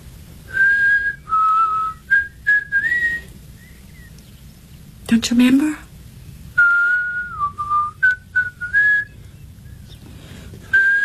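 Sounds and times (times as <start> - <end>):
faint low rumble: 0.0 - 11.0
person whistling: 0.5 - 3.8, 6.6 - 9.2, 10.7 - 11.0
speech: 5.1 - 5.8.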